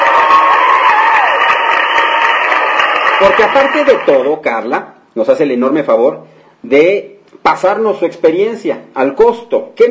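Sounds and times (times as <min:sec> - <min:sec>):
crowd applause sound effect: 0:00.0 - 0:04.3
voices cheering: 0:00.0 - 0:04.3
speech: 0:03.2 - 0:09.8.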